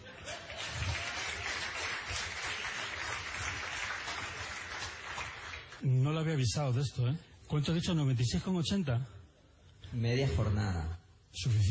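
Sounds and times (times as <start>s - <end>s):
audience applause: 0.0s - 5.8s
speech: 5.8s - 9.2s, 9.9s - 11.7s.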